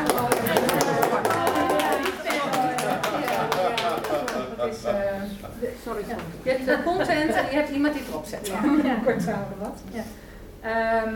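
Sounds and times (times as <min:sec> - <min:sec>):
applause for a member at a choir group's meeting: 0:00.0 - 0:04.5
murmured chatter: 0:00.0 - 0:10.2
speech: 0:05.6 - 0:11.1.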